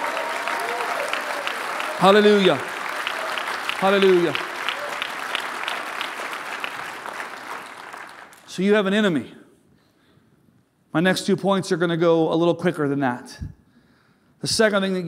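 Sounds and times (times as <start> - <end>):
audience applause: 0.0 - 8.5
speech: 2.0 - 2.7, 3.8 - 4.5, 8.6 - 9.4, 10.9 - 13.6, 14.4 - 15.0.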